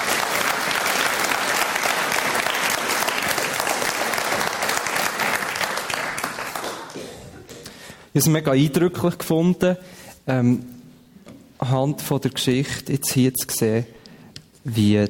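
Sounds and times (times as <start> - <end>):
audience applause: 0.0 - 7.5
speech: 8.2 - 10.8, 11.6 - 14.0, 14.6 - 15.0.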